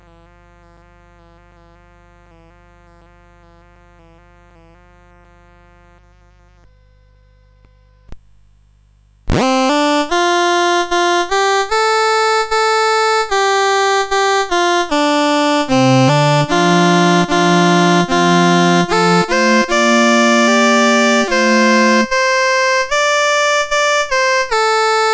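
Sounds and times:
CSG8580R5 chip music: 9.4 - 25.1.

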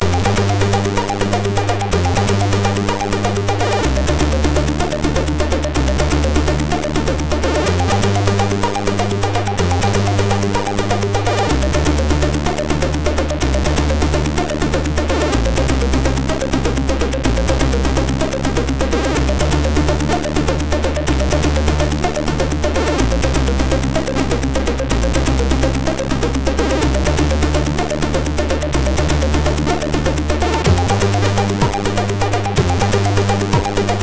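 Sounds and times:
MOS6581R3 chip tune: 0.0 - 34.0.

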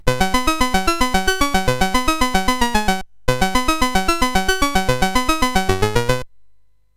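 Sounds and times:
MOS 8580 SID chip game music: 0.0 - 6.2.

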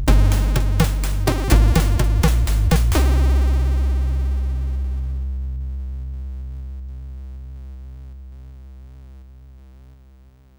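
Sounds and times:
jazz chiptune on CSG8580R5 SID chip: 0.0 - 5.2.

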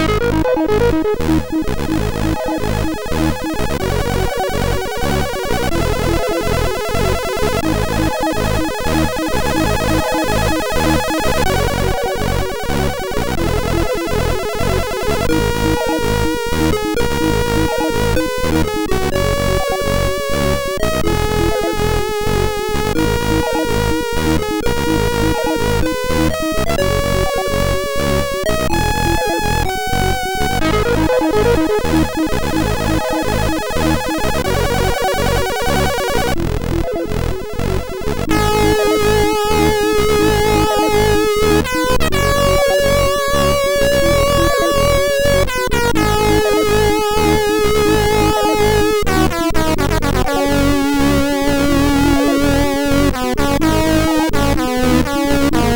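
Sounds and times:
chiptune intro on a MOS6581R4 SID chip: 0.0 - 55.7.

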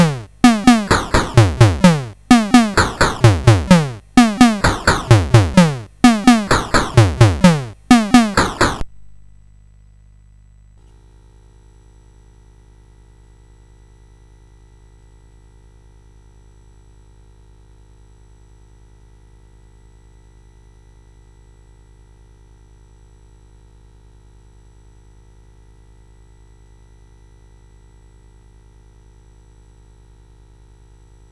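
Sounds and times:
drum demo: 0.0 - 9.3.

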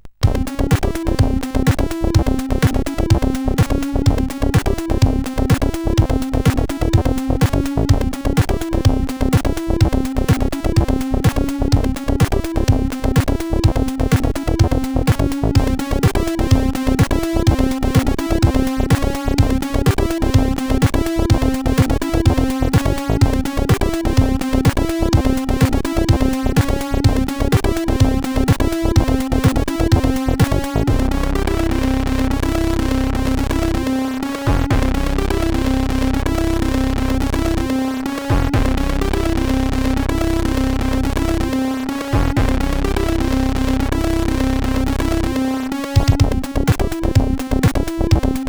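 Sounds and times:
SID CSG8580 chiptune synthesizer: 0.2 - 48.4.

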